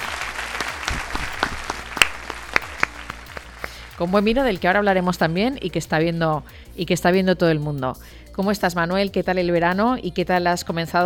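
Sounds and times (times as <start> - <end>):
audience applause: 0.0 - 4.0
speech: 4.0 - 11.0.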